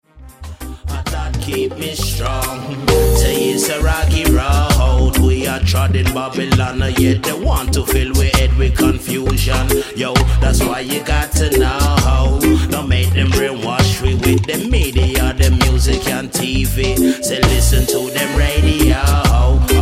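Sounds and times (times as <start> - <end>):
roots rock reggae music: 0.2 - 19.7.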